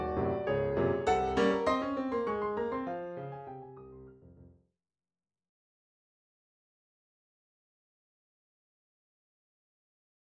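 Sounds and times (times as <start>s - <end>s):
solo piano mazurka: 0.0s - 4.6s.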